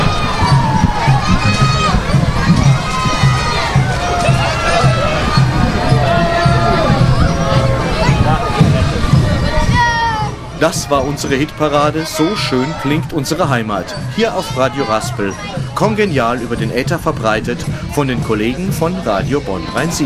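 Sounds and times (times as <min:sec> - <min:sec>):
children yelling: 0:00.0 - 0:16.4
carnival parade crowd cheering: 0:00.0 - 0:16.5
speech: 0:10.6 - 0:20.0.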